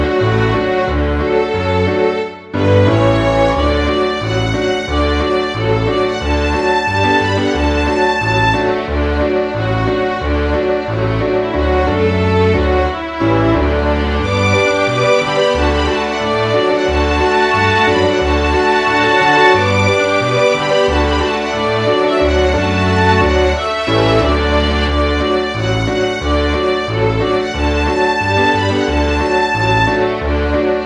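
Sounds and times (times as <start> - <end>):
violin playing a shanty: 0.1 - 30.8.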